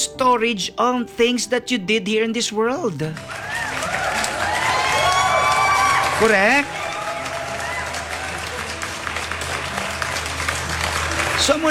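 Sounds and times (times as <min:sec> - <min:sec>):
speech: 0:00.0 - 0:03.6, 0:06.2 - 0:06.8, 0:11.4 - 0:11.6
audience applause: 0:03.1 - 0:11.6.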